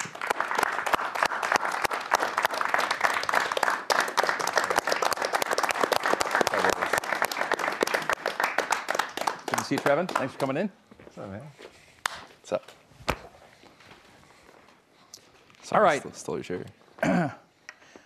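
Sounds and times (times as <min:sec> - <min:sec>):
audience applause welcoming a basketball player as special guest: 0:00.0 - 0:10.6
speech: 0:09.7 - 0:11.6, 0:15.7 - 0:17.4.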